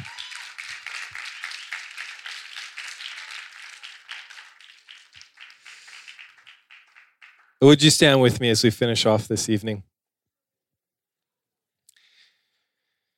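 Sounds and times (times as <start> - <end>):
light applause: 0.0 - 8.4
speech: 7.6 - 9.9.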